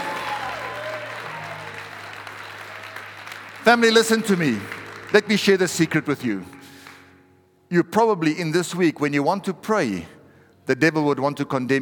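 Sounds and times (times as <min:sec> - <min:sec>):
audience applause: 0:00.0 - 0:06.0
speech: 0:03.7 - 0:06.6, 0:07.7 - 0:11.8.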